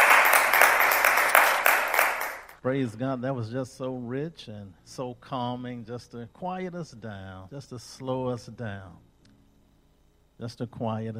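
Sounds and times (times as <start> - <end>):
audience round of applause: 0.0 - 2.6
speech: 2.6 - 9.1, 10.4 - 11.1.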